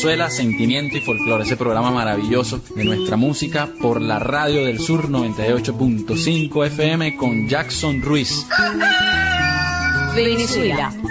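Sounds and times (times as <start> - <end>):
speech: 0.0 - 9.2, 10.2 - 11.0
rooster crowing: 8.5 - 10.6.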